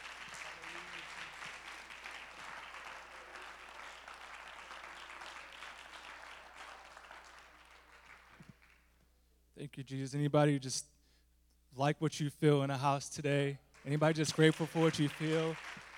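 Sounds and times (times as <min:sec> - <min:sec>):
audience clapping hands: 0:00.0 - 0:09.0, 0:13.7 - 0:15.9
speech: 0:09.6 - 0:10.9, 0:11.8 - 0:15.8.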